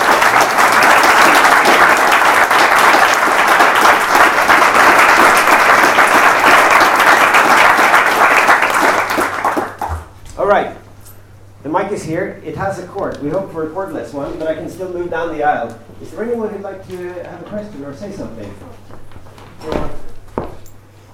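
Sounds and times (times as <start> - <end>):
room full of people applauding: 0.0 - 10.2
speech: 11.9 - 18.9, 19.6 - 20.0.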